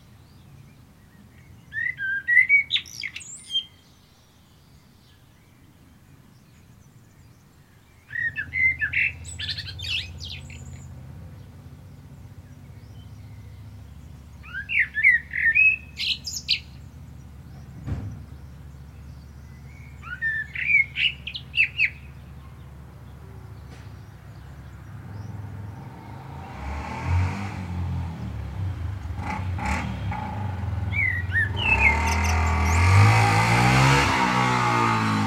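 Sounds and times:
common blackbird song: 0:00.0 - 0:35.2
low rumbling background: 0:04.6 - 0:35.2
dull thud: 0:17.7 - 0:18.4.

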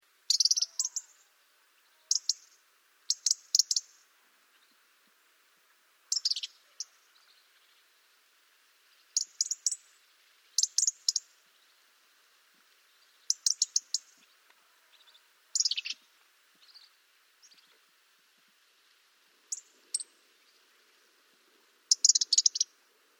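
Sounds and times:
European robin ticking calls: 0:00.2 - 0:04.9, 0:05.6 - 0:07.9, 0:08.9 - 0:11.8, 0:12.8 - 0:17.9, 0:19.5 - 0:20.7, 0:21.8 - 0:22.9.

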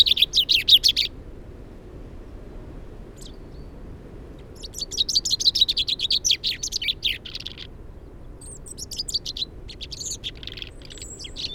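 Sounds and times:
common chaffinch Fringilla coelebs chirping: 0:00.0 - 0:01.1, 0:04.6 - 0:07.7, 0:08.4 - 0:11.5.

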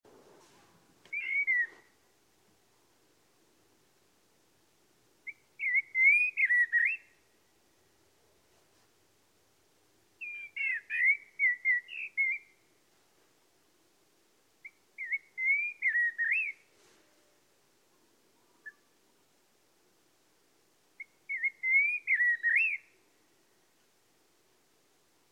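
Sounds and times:
Common blackbird whistling: 0:01.1 - 0:02.0, 0:05.3 - 0:07.1, 0:10.2 - 0:12.6, 0:14.6 - 0:16.7, 0:21.0 - 0:23.0.

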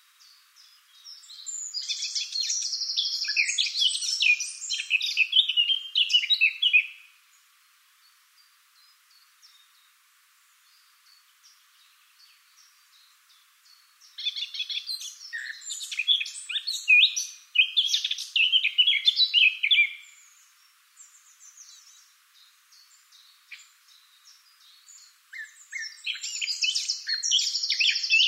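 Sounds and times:
Eurasian blackcap song: 0:00.2 - 0:07.1, 0:10.6 - 0:28.2.

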